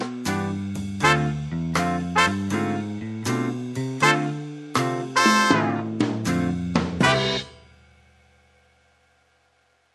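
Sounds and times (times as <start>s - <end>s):
bebop major scale exercise: 0.0s - 7.7s.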